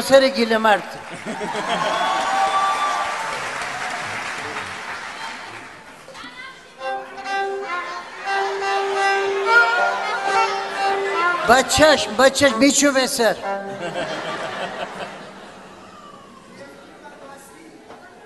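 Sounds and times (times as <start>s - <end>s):
speech: 0.1s - 2.4s, 11.5s - 14.3s
audience clapping in honour of the children: 1.0s - 6.1s, 7.0s - 11.4s
laughter: 1.1s - 2.4s, 13.5s - 16.4s.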